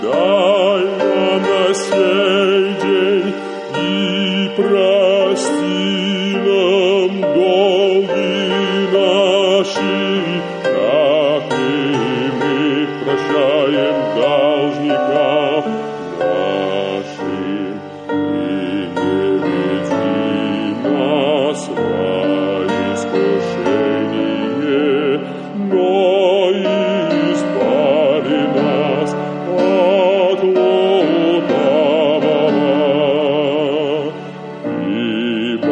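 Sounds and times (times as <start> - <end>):
bass voice singing: 0.0 - 35.6.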